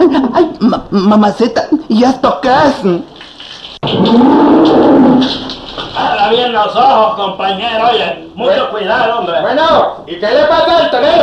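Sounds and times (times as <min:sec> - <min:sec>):
speech: 0:00.6 - 0:03.1, 0:03.8 - 0:05.5, 0:06.2 - 0:11.2
bull mooing: 0:03.8 - 0:05.6.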